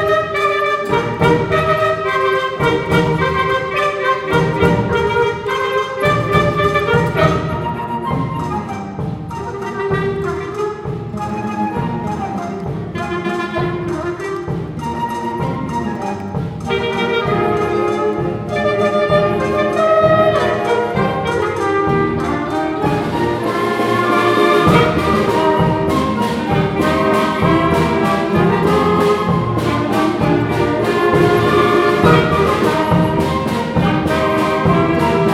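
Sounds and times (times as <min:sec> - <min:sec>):
orchestra playing: 0:00.0 - 0:35.3.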